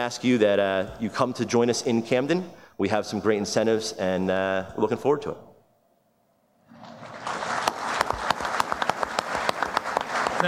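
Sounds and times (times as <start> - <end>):
speech: 0.0 - 5.5
audience applause: 6.7 - 10.4.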